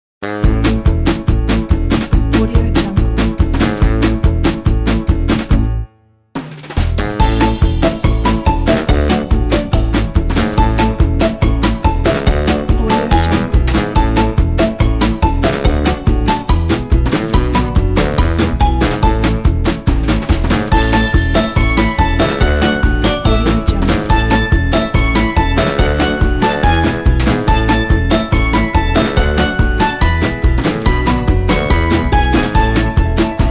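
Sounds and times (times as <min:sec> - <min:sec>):
upbeat funny music: 0:00.2 - 0:05.8, 0:06.4 - 0:33.4.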